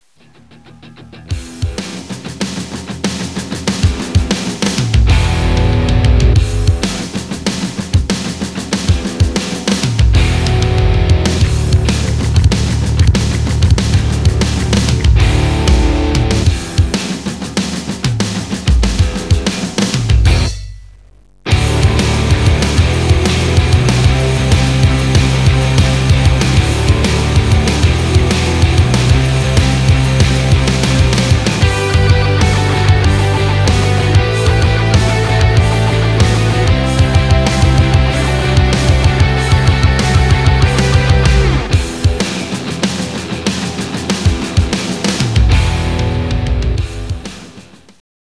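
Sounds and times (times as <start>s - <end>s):
fast drums at 190 bpm: 0.0s - 48.0s.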